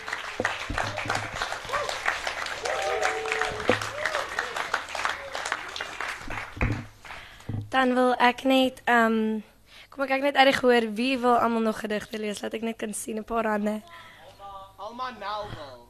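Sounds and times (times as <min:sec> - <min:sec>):
audience applauding for poets: 0:00.0 - 0:07.4
scattered voices and cheers: 0:02.6 - 0:04.6
speech: 0:07.8 - 0:14.1, 0:14.9 - 0:15.8.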